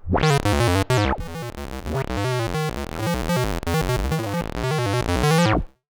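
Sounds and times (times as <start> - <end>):
odd modular synthesizer: 0.0 - 5.7.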